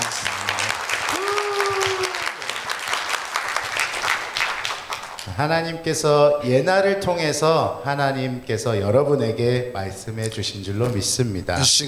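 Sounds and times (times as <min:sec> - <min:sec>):
church congregation applause for a young woman: 0:00.0 - 0:05.3
speech: 0:05.4 - 0:11.8.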